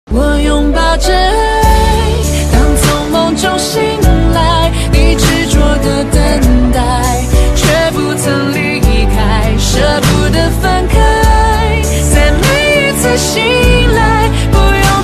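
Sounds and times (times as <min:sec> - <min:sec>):
Chinese style music: 0:00.4 - 0:15.0.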